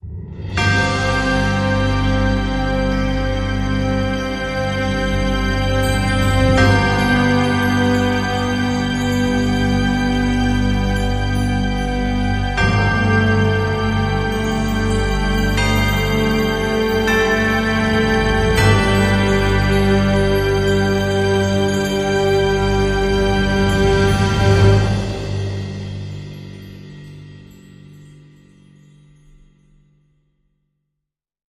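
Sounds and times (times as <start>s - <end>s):
Christmas ambience: 0.0s - 29.9s.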